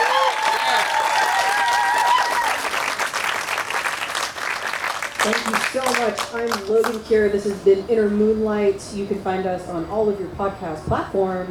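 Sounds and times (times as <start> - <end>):
audience applause: 0.0 - 6.7
speech: 5.2 - 11.5.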